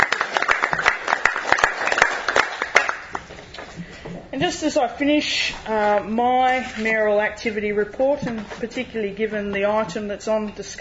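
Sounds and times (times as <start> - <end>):
audience applause: 0.0 - 3.2
speech: 4.4 - 10.7.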